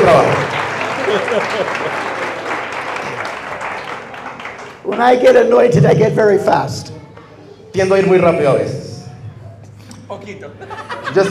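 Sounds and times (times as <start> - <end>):
laughter: 0.0 - 2.4, 10.4 - 11.2
audience applause: 0.0 - 5.0
speech: 0.1 - 2.2, 4.8 - 7.0, 7.7 - 8.8, 10.1 - 11.2.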